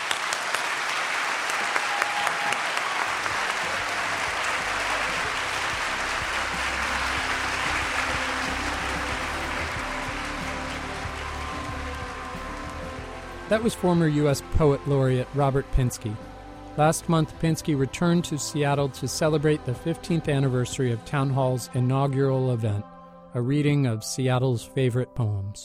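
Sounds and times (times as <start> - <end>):
audience applause: 0.0 - 15.1
speech: 13.5 - 22.8, 23.4 - 25.6.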